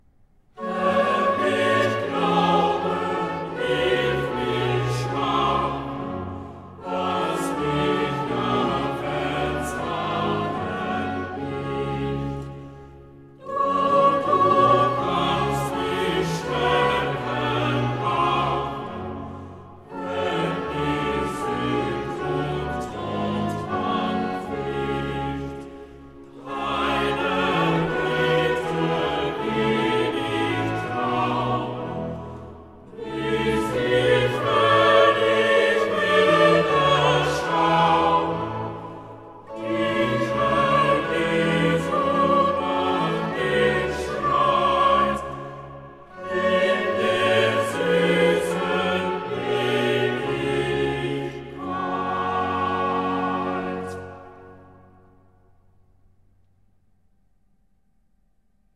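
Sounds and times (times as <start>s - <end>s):
choir singing a chorale: 0.5s - 55.5s.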